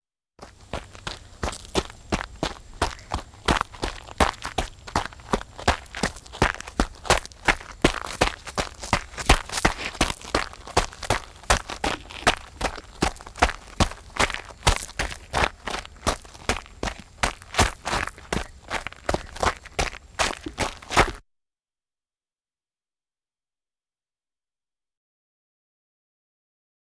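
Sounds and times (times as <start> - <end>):
machinery trucks moving: 0.4 - 21.2.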